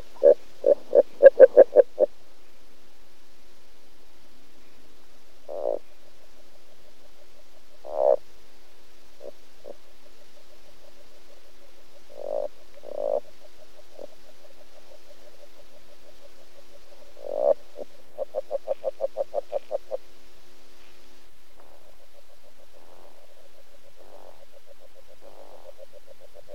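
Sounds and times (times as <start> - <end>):
agile frog: 0.0 - 2.2, 5.4 - 8.4, 9.2 - 20.1, 20.8 - 26.5.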